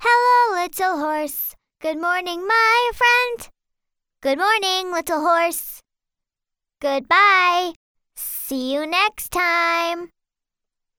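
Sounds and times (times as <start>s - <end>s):
foreign woman singing a children's song in American English: 0.0s - 3.5s, 4.2s - 5.8s, 6.8s - 10.1s.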